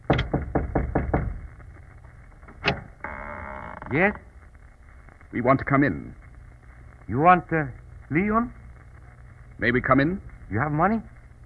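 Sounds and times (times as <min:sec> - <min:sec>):
knocking on a door: 0:00.0 - 0:01.5
speech: 0:03.9 - 0:04.3, 0:05.3 - 0:06.2, 0:07.1 - 0:08.6, 0:09.6 - 0:11.1.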